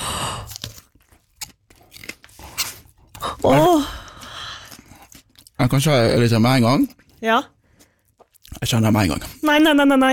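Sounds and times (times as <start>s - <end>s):
biting and chewing a habanero chili: 0.0s - 8.7s
speech: 3.4s - 3.9s, 5.7s - 7.5s, 8.6s - 10.1s.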